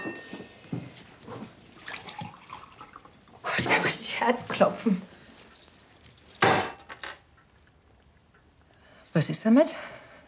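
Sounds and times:
faint noise: 0:00.0 - 0:10.2
water being poured for drinking: 0:01.8 - 0:03.4
speech: 0:03.6 - 0:05.1, 0:09.2 - 0:10.0.

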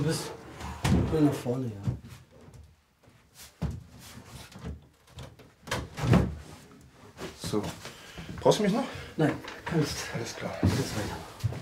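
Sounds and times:
speech: 0:00.0 - 0:00.4, 0:01.1 - 0:01.9, 0:07.5 - 0:07.8, 0:08.4 - 0:11.3
cupboard being tipped forward during cleaning work: 0:00.0 - 0:02.7, 0:03.6 - 0:06.7, 0:08.3 - 0:11.6.

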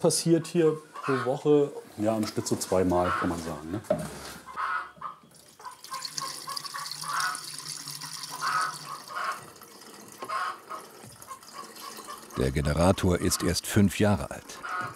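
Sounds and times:
speech: 0:00.0 - 0:04.4, 0:12.4 - 0:14.6
cooling water pouring into a container: 0:05.4 - 0:14.6.

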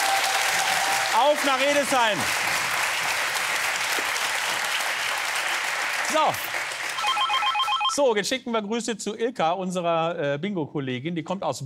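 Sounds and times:
audience applause: 0:00.0 - 0:07.9
speech: 0:01.2 - 0:02.6, 0:06.1 - 0:06.5, 0:08.0 - 0:11.6.

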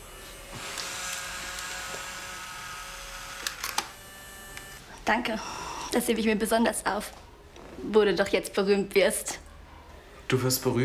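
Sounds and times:
camera clicks taking a farewell photo: 0:03.4 - 0:03.9
speech: 0:05.1 - 0:07.2, 0:07.8 - 0:09.4, 0:10.3 - 0:10.8.

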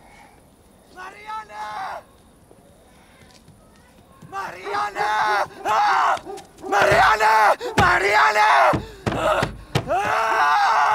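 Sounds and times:
speech: 0:04.3 - 0:10.6
banging on a door: 0:06.8 - 0:07.2, 0:07.8 - 0:10.3.

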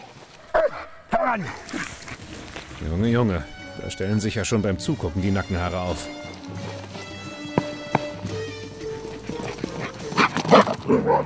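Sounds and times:
hunting dog barking during chase: 0:00.5 - 0:01.6, 0:09.1 - 0:11.2
speech: 0:01.2 - 0:06.8.

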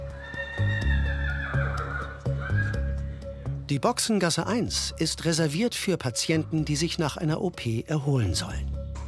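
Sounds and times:
horse whinnying at equine clinic: 0:00.2 - 0:03.0
speech: 0:03.7 - 0:08.8.

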